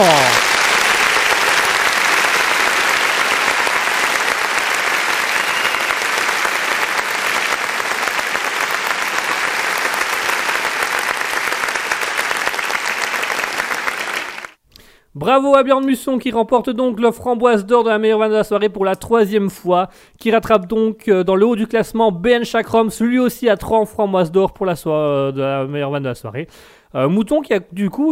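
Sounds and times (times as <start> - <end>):
crowd applause: 0.0 - 14.6
speech: 15.4 - 28.1.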